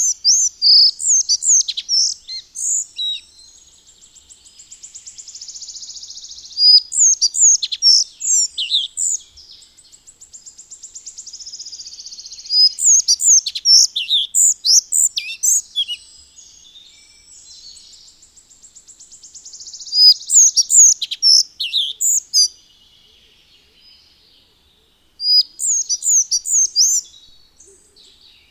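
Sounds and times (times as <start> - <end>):
Collared flycatcher song of high squeaky whistled notes: 0.0 - 3.3, 6.6 - 9.2, 12.4 - 16.0, 19.9 - 22.5, 25.3 - 27.1.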